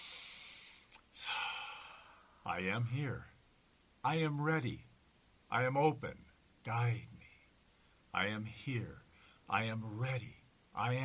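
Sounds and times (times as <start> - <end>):
slow inhale during a guided meditation: 0.0 - 2.4, 9.1 - 9.5
speech: 2.5 - 3.3, 4.0 - 4.9, 5.5 - 7.2, 8.1 - 11.0.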